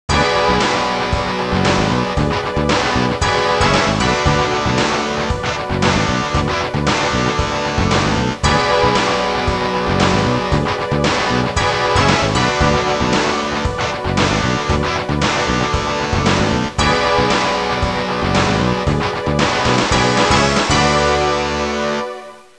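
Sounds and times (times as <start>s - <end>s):
rock music ringtone: 0.1s - 22.4s.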